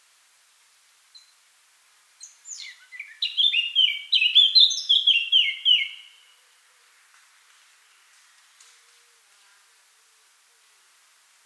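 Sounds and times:
Eurasian blackcap singing: 0:02.2 - 0:06.1.

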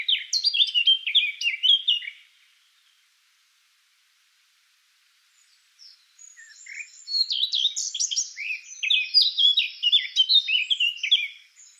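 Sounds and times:
Eurasian blackcap Sylvia atricapilla singing: 0:00.0 - 0:02.2, 0:05.4 - 0:11.7.

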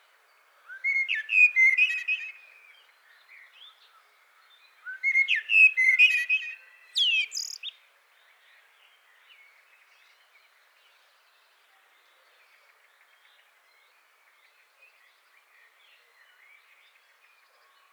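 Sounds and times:
common blackbird Turdus merula singing: 0:00.7 - 0:02.8, 0:04.8 - 0:07.8.

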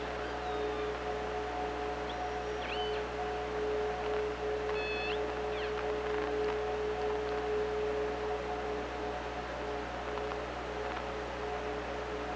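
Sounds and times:
killer whale call: 0:00.0 - 0:03.5, 0:04.1 - 0:06.2
hum and hiss: 0:00.0 - 0:12.3.

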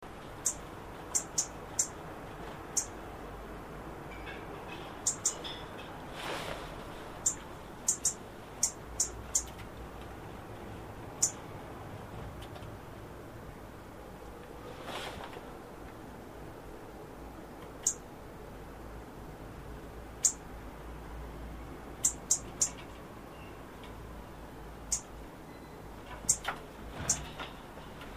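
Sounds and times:
faint rushing noise: 0:00.0 - 0:28.1
European robin tick calls: 0:00.4 - 0:02.0, 0:02.7 - 0:03.0, 0:05.0 - 0:05.4, 0:07.2 - 0:09.7, 0:11.1 - 0:11.4, 0:17.6 - 0:18.0, 0:20.2 - 0:20.4, 0:22.0 - 0:22.8, 0:24.8 - 0:25.1, 0:26.2 - 0:26.5.

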